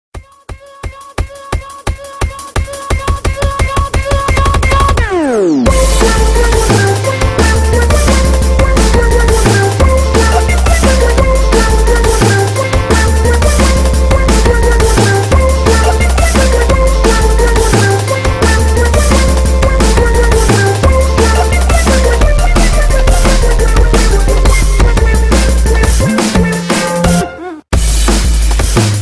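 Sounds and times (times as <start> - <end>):
bass: 3.2 - 29.0.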